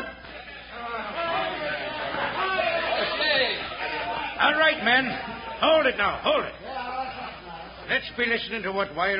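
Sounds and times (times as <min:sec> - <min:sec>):
crowd of men shouting and cheering: 0:00.5 - 0:07.8
speech: 0:04.4 - 0:06.6, 0:07.9 - 0:09.1.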